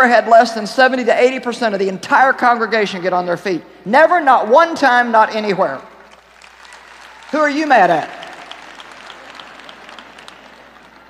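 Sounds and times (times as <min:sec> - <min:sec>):
speech: 0:00.0 - 0:05.9, 0:07.3 - 0:08.2
audience clapping weakly: 0:06.0 - 0:11.0.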